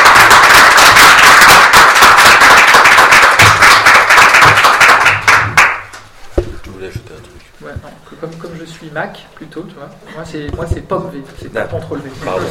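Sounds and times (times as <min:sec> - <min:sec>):
crowd applause: 0:00.0 - 0:06.0
speech: 0:08.7 - 0:12.4.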